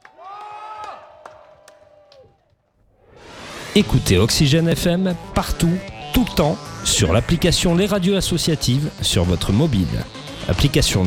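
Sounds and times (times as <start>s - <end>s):
crowd cheering and whooping: 0.0s - 2.5s
scattered claps: 0.0s - 2.6s
speech: 3.8s - 11.0s.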